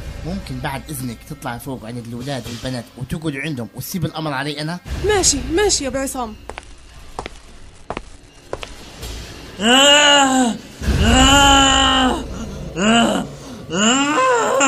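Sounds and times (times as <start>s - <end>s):
speech: 0.2s - 6.6s, 9.6s - 14.6s
creature howling: 9.6s - 14.6s.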